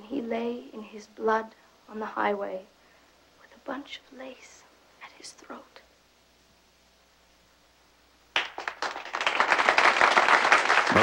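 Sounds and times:
speech: 0.3s - 2.8s, 3.7s - 4.6s, 5.2s - 5.8s
rapid overlapping handclaps: 8.3s - 11.0s.

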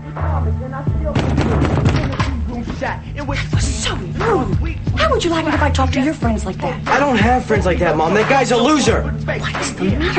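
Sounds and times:
fist pounding on a door: 1.1s - 2.4s
speech: 2.8s - 10.1s.

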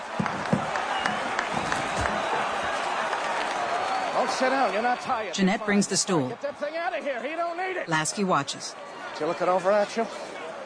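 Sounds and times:
sports writers applauding: 0.0s - 7.6s
speech: 4.3s - 10.2s.

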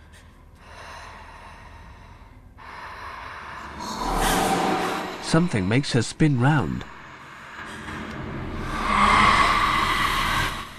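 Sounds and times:
petrified woman breathing rapidly in fright: 0.0s - 5.2s, 7.1s - 10.7s
speech: 5.3s - 6.9s.

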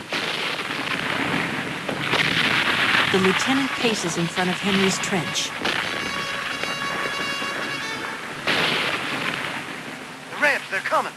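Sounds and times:
artillery shells exploding nearby: 0.0s - 10.5s
speech: 3.1s - 5.8s.

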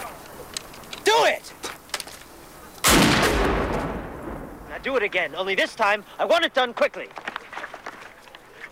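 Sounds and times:
gunshot from a weapon being fired: 2.8s - 4.8s
speech: 4.9s - 7.2s.

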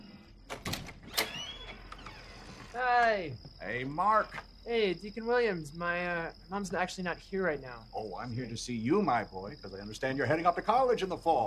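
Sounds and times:
front door clicks and knocks: 0.5s - 3.2s
speech: 2.8s - 11.4s.

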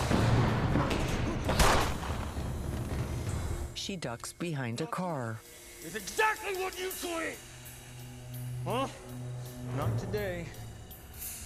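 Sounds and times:
gunshots: 0.0s - 3.2s
speech: 3.9s - 7.5s, 8.7s - 10.6s.

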